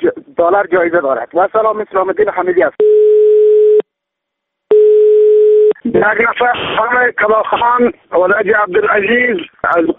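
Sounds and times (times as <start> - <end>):
speech: 0.4 - 2.8, 5.8 - 9.9
telephone call signal beeps: 2.8 - 3.8, 4.7 - 5.8.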